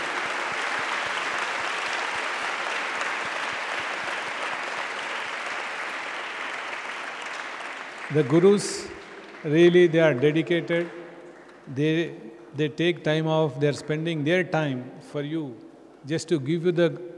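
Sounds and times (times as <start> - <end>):
large crowd applause: 0.0 - 11.7
speech: 8.1 - 11.0, 11.7 - 17.1.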